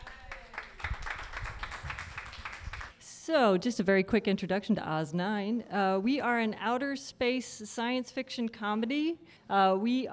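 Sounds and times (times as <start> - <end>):
audience applause: 0.0 - 2.9
speech: 3.3 - 10.1.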